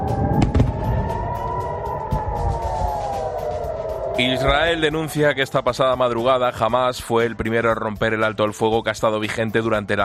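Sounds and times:
sirens in Gaza: 0.0s - 6.2s
explosions in Gaza: 0.2s - 1.1s
speech: 4.2s - 10.0s.

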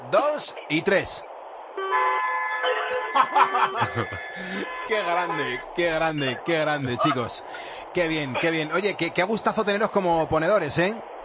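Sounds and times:
speech: 0.1s - 1.3s, 3.1s - 11.1s
loud horns blaring in a sustained overlapping chord: 1.8s - 5.7s
people laughing: 2.9s - 8.4s.

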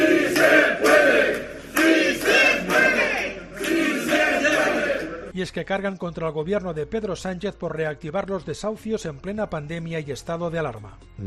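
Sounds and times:
protest crowd chanting outside courthouse: 0.0s - 5.3s
speech: 5.4s - 11.2s.

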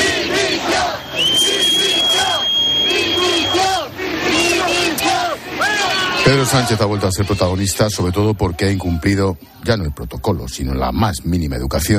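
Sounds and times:
crowd whistling: 0.0s - 8.3s
speech: 6.3s - 11.9s.

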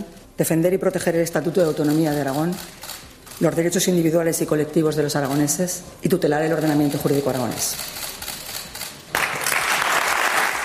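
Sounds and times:
speech: 0.4s - 8.1s
standing ovation from deputies in the Cortes de Aragón parliament chamber: 9.1s - 10.6s.

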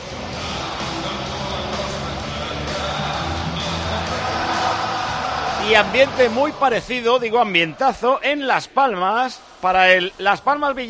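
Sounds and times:
stadium crowd singing a football club anthem: 0.0s - 6.7s
stadium crowd shouting and whooping: 0.0s - 7.9s
speech: 5.7s - 10.8s.

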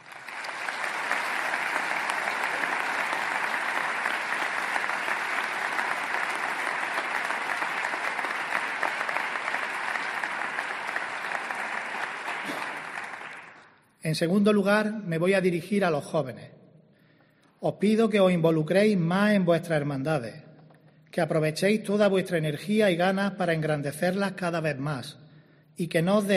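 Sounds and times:
large audience applause: 0.0s - 13.8s
speech: 14.1s - 16.6s, 17.6s - 20.4s, 21.1s - 25.2s, 25.8s - 26.3s.

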